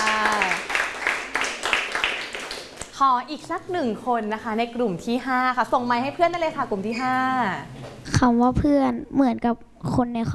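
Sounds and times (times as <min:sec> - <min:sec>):
applause: 0:00.0 - 0:02.9
speech: 0:03.0 - 0:10.3.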